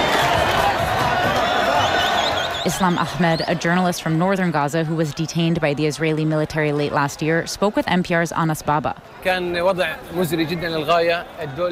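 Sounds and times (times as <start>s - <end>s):
crowd cheering in Khan Yunis at Palestinian detainees' release: 0.0s - 6.4s
speech: 2.6s - 11.7s.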